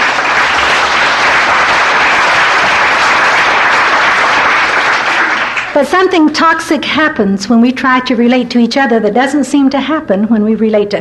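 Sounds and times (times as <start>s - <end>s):
audience applause: 0.0s - 5.8s
speech: 5.8s - 11.0s.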